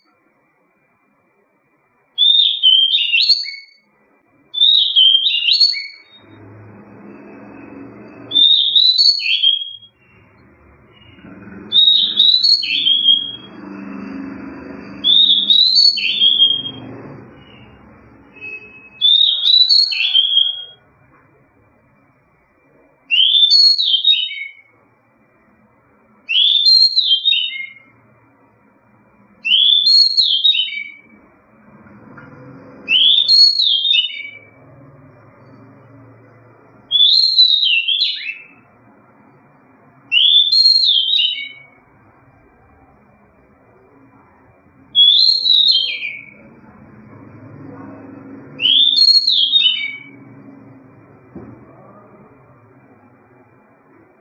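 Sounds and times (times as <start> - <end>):
Seychelles magpie-robin whistled song: 2.2 - 3.9, 4.5 - 20.9, 23.1 - 24.7, 26.3 - 28.0, 29.4 - 31.3, 32.8 - 38.7, 40.1 - 41.8, 44.8 - 46.5, 48.2 - 50.7.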